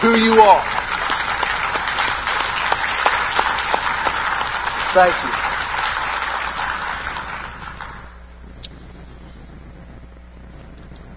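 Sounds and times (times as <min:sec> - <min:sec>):
speech: 0:00.0 - 0:00.8, 0:05.0 - 0:05.4
audience applauding: 0:00.0 - 0:08.3.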